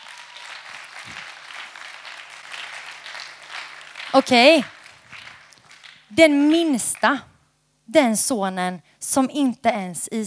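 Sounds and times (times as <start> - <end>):
audience applause: 0.0 - 7.2
speech: 4.2 - 4.7, 6.1 - 7.3, 7.9 - 10.2.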